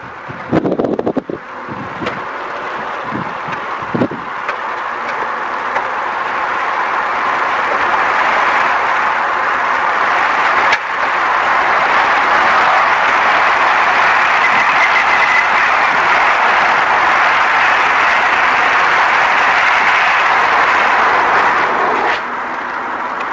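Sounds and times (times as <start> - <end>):
car engine running during a test drive: 0.0 - 23.3.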